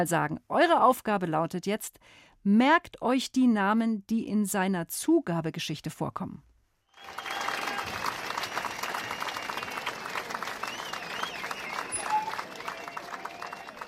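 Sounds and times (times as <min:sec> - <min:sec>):
speech: 0:00.0 - 0:07.3
audience applause: 0:06.9 - 0:13.8.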